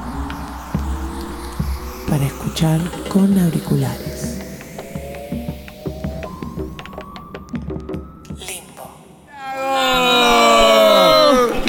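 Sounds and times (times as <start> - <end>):
speech: 2.1 - 4.1
group of people shouting a battle cry: 9.3 - 11.6.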